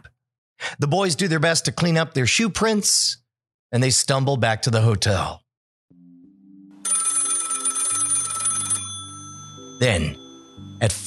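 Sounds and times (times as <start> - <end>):
speech: 0.8 - 5.4, 9.8 - 10.2, 10.8 - 11.0
telephone ringing: 6.8 - 11.0.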